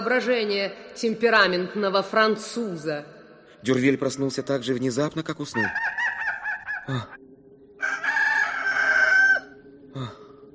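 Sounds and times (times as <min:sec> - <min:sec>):
speech: 0:00.0 - 0:06.0, 0:06.9 - 0:07.2, 0:10.0 - 0:10.2
rooster crowing: 0:05.6 - 0:07.1, 0:07.8 - 0:09.6.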